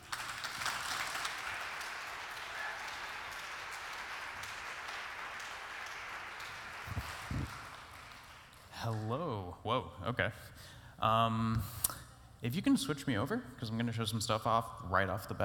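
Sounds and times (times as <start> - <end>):
audience applause for a film-score composer coming on stage: 0.0 - 8.6
speech: 8.8 - 11.8, 12.4 - 15.4.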